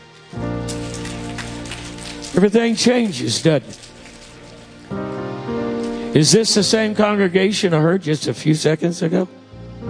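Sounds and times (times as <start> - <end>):
audience clapping with four fingers: 0.1 - 4.9
speech: 2.3 - 3.9, 6.2 - 9.4.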